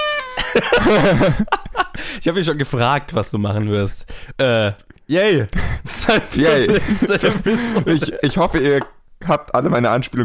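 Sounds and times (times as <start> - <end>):
toy horn toot: 0.0 - 0.6
laughter: 0.4 - 2.0, 5.8 - 8.6
speech: 0.6 - 10.2.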